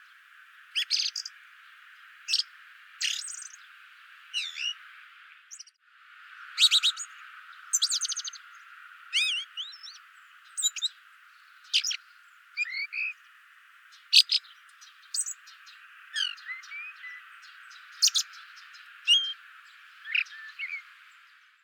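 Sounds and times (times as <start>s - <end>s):
common blackbird calling: 0.7s - 1.3s, 2.3s - 3.6s, 4.3s - 4.8s, 6.6s - 8.5s, 9.1s - 13.2s, 13.9s - 20.9s.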